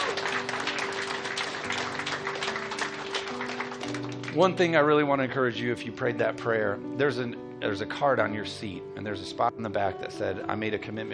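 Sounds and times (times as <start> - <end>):
audience clapping hands: 0.0 - 4.8
speech: 4.4 - 11.1.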